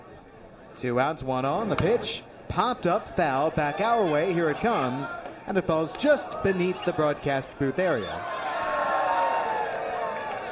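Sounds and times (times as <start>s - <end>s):
speech: 0.8s - 8.5s
baseball stadium crowd cheering and applauding a caught foul ball: 2.6s - 10.5s.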